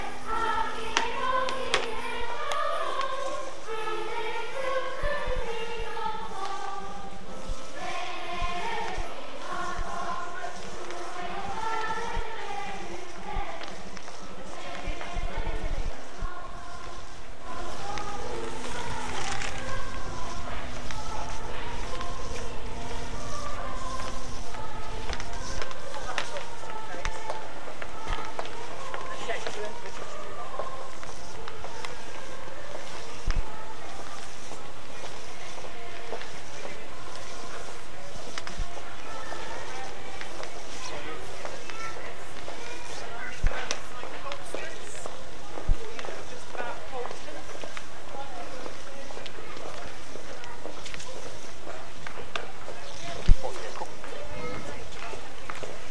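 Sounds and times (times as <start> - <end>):
children singing in Worcester at lunchtime: 0.0 - 44.1
general ambience: 0.0 - 55.8.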